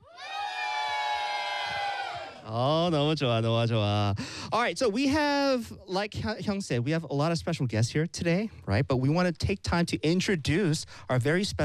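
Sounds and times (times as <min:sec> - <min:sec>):
audience cheering and shouting at a live event in Busan: 0:00.0 - 0:02.6
speech: 0:02.5 - 0:11.6.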